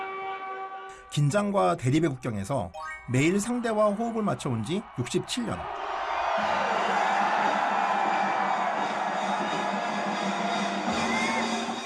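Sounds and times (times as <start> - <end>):
speech: 1.1 - 6.5
large crowd roaring and cheering at border ceremony: 3.5 - 11.8.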